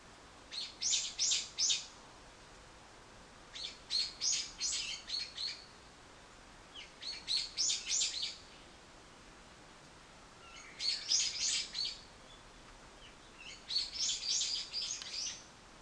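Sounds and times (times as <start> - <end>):
bird: 0.5 - 2.0, 3.5 - 5.8, 6.7 - 8.7, 10.4 - 15.5.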